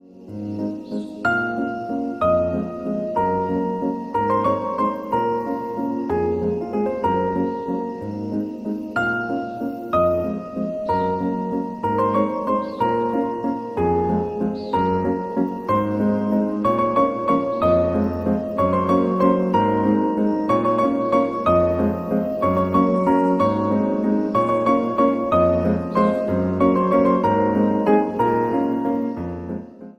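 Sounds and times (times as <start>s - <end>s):
piano ringtone: 1.2s - 29.6s.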